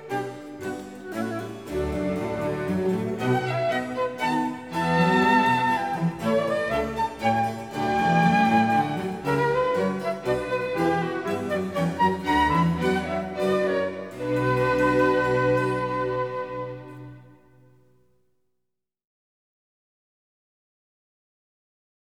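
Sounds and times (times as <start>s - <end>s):
orchestra playing a suite: 0.0s - 17.5s.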